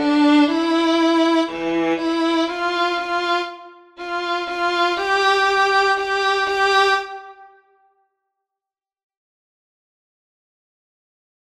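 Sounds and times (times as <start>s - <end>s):
short violin piece: 0.0s - 7.8s.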